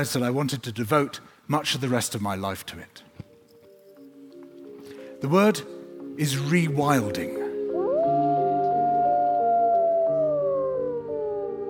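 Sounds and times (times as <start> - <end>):
speech: 0.0 - 3.1, 5.2 - 7.4
gray wolf howling: 7.7 - 11.6.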